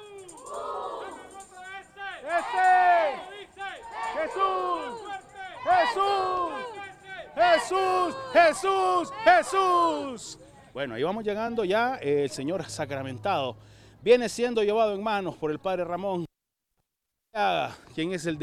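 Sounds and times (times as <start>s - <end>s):
crowd at a religious procession for the Blessed Sacrament shouting cheers of viva: 0.0s - 10.3s
speech: 7.7s - 16.3s, 18.0s - 18.4s.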